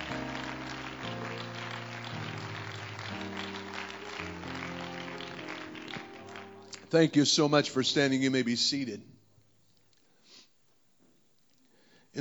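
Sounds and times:
audience clapping hands: 0.0s - 7.3s
sustained shifting chords of organ-like music: 0.0s - 8.3s
speech: 6.9s - 9.1s.

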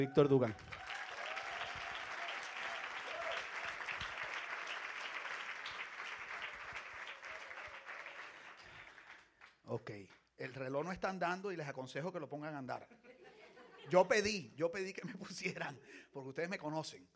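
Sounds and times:
speech: 0.0s - 0.8s, 9.7s - 13.1s, 13.8s - 17.1s
audience applause: 0.0s - 9.6s
laughter: 12.9s - 14.2s.

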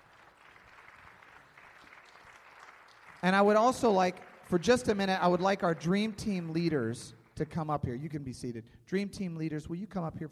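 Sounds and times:
audience applause for dream team members: 0.0s - 6.7s
speech: 3.2s - 10.3s.

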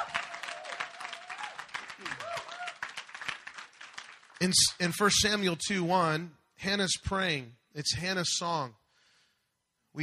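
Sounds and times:
people cheering and shouting praise: 0.0s - 2.8s
crowd applauding: 0.0s - 4.8s
speech: 4.4s - 8.8s.

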